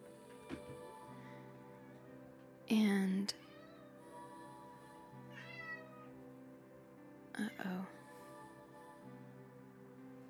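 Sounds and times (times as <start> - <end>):
speech: 2.7 - 3.5
two cats meowing at each other: 3.4 - 4.0, 5.3 - 6.1.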